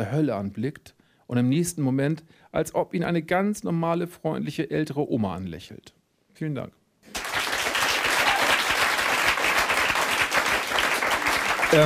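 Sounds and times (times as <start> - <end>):
speech: 0.0 - 6.8
audience applause after a reading: 7.1 - 11.8.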